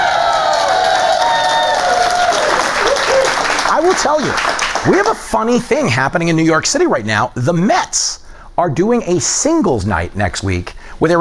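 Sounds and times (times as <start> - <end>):
New York City studio audience cheering and applauding: 0.0 - 5.3
speech: 4.0 - 11.2.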